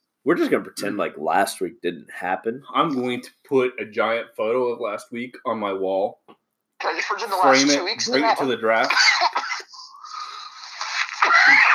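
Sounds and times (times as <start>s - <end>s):
speech: 0.2s - 6.2s, 6.8s - 9.1s
person coughing: 8.9s - 9.7s.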